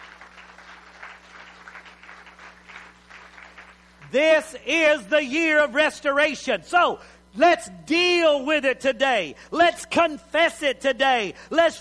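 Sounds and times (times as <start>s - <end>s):
audience clapping: 0.0s - 4.1s
speech: 4.1s - 11.7s.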